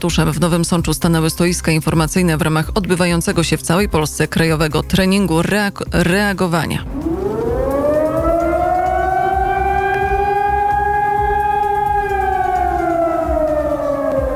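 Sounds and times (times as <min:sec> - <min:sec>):
speech: 0:00.0 - 0:07.1
civil defense alarm siren wailing: 0:06.8 - 0:14.3
low rumble: 0:06.8 - 0:14.3.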